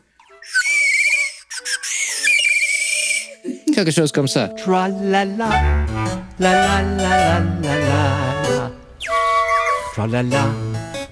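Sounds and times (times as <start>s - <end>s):
bird-call whistle played by percussionist: 0.2s - 3.4s, 9.0s - 10.0s
speech: 3.8s - 8.3s, 10.0s - 10.6s.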